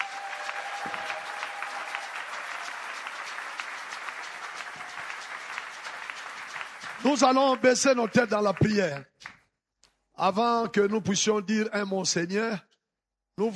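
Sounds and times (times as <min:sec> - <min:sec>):
congregation clapping during a church service: 0:00.0 - 0:09.4
speech: 0:07.0 - 0:09.1, 0:10.2 - 0:12.7, 0:13.4 - 0:13.5.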